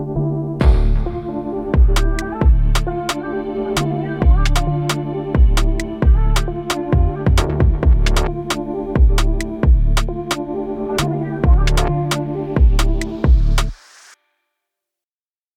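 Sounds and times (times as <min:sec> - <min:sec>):
Brazilian funk type beat: 0:00.6 - 0:10.4, 0:11.0 - 0:13.8.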